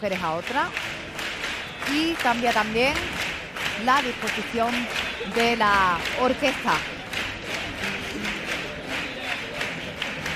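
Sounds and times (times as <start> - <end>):
speech: 0.0 - 1.0, 1.9 - 7.0
audience applause: 0.1 - 10.3.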